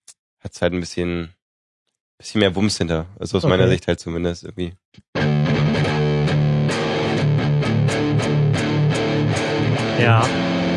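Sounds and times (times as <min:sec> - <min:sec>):
speech: 0:00.4 - 0:01.4, 0:02.2 - 0:05.8, 0:10.0 - 0:10.4
heavily distorted palm-muted electric guitar riff: 0:05.2 - 0:10.7.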